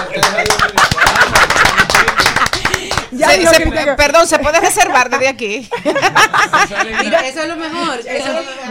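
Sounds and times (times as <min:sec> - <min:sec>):
laughter: 0:00.0 - 0:03.5, 0:04.7 - 0:07.7
applause: 0:00.2 - 0:03.2
speech: 0:03.3 - 0:08.6.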